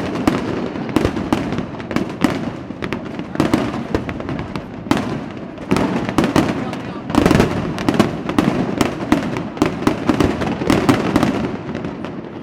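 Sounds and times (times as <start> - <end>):
intense fireworks display: 0.0 - 12.4.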